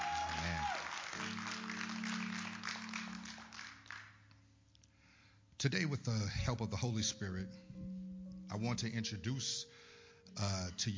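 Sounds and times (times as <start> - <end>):
audience applause: 0.0 - 4.2
speech: 5.6 - 7.9, 8.5 - 10.9.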